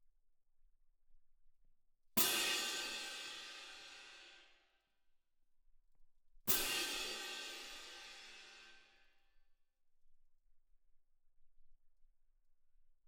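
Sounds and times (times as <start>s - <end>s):
percussion: 2.2s - 4.6s, 6.5s - 9.0s.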